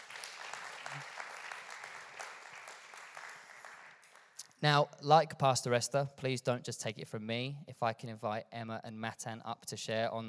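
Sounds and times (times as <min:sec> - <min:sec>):
audience applause: 0:00.0 - 0:04.3
speech: 0:04.6 - 0:10.2.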